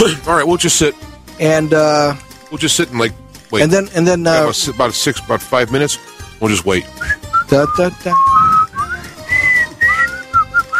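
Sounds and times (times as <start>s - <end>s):
speech: 0.0s - 8.4s
person whistling short high notes: 7.0s - 10.7s.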